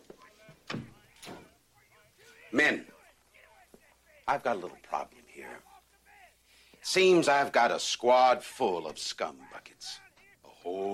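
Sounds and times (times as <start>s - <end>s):
door swinging shut with a heavy thud: 0.5s - 1.6s
speech: 2.5s - 2.9s, 4.3s - 5.7s, 6.8s - 10.0s, 10.6s - 10.9s.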